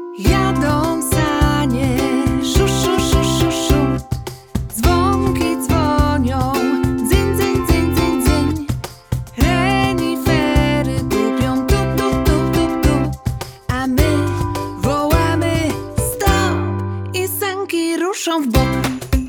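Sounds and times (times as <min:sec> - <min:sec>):
vocal version of music: 0:00.2 - 0:19.2.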